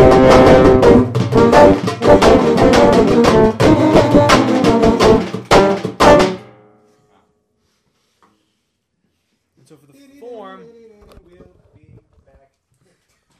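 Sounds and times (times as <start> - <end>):
pool party rhythm section rehearsal: 0.0 - 6.4.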